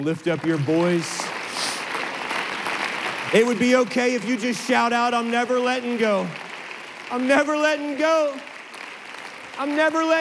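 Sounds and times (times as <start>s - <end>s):
speech: 0.0s - 1.3s, 3.3s - 6.4s, 7.1s - 8.5s, 9.6s - 10.1s
audience applause: 0.0s - 10.1s.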